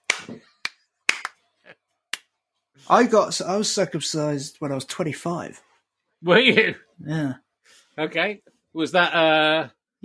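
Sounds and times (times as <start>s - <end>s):
sharp hand claps swatting at a fly: 0.0s - 1.4s
speech: 2.9s - 7.4s, 8.0s - 10.0s.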